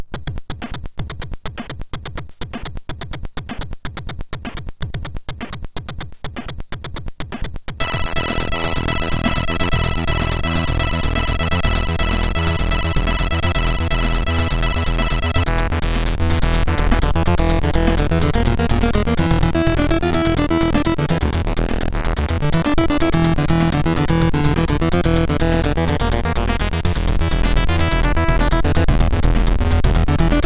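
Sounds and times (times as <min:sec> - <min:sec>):
SID MOS6581R4 chiptune music: 0:07.8 - 0:30.4.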